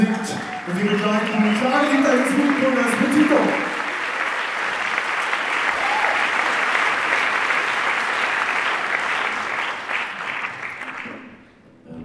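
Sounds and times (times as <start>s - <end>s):
audience applause: 0.0s - 11.4s
speech: 0.7s - 3.7s.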